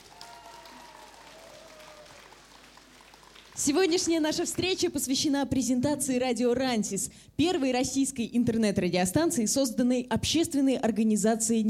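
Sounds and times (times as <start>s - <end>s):
crowd applause: 0.0s - 4.6s
speech: 3.6s - 11.6s.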